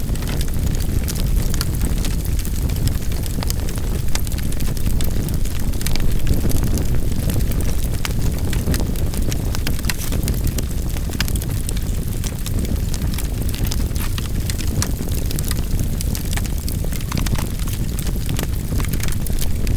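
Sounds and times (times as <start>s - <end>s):
fire burning: 0.0s - 19.7s.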